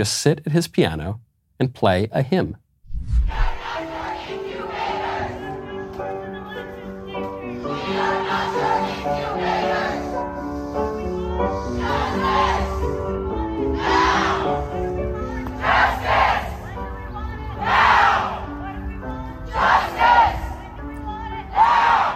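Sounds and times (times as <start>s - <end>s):
speech: 0.0s - 3.4s
protesters chanting: 3.6s - 5.6s, 7.6s - 10.1s, 11.3s - 14.6s, 15.2s - 22.1s.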